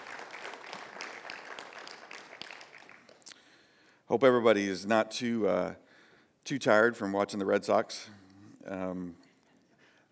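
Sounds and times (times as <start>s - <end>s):
audience clapping: 0.0s - 3.3s
speech: 4.1s - 5.8s, 6.4s - 9.2s.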